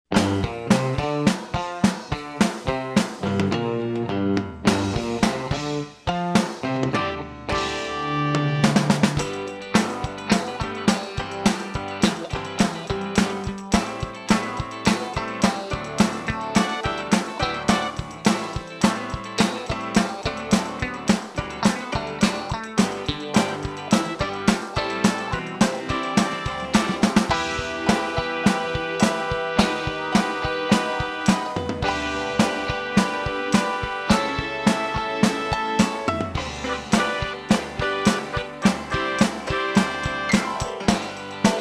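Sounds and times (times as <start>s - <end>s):
light smooth jazz in Motown style: 0.1s - 41.5s.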